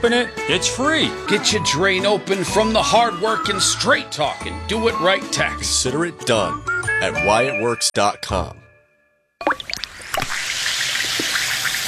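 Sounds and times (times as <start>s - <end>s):
speech: 0.0s - 8.6s
Alka-Seltzer effervescent tablet dropping into water: 9.4s - 11.8s
Alka-Seltzer tablet fizzing in water: 9.4s - 11.8s.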